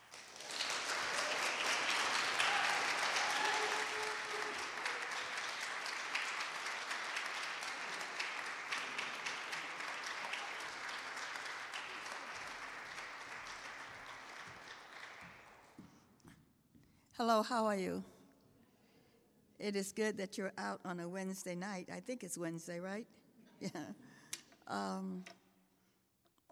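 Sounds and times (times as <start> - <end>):
audience applause welcoming a poet at a reading: 0.0 - 15.8
speech: 17.2 - 18.1, 19.6 - 24.1, 24.7 - 25.4.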